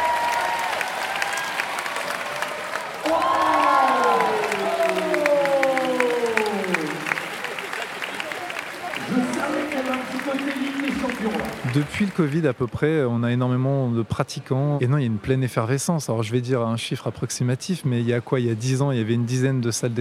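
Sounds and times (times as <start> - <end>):
audience applause: 0.0 - 13.0
speech: 11.8 - 19.9.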